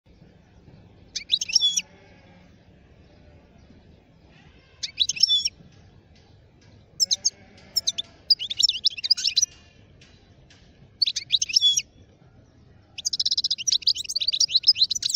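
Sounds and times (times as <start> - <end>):
wild European goldfinch giving rapid high twittering notes: 1.2 - 1.8, 4.8 - 5.5, 7.0 - 9.5, 13.0 - 15.1.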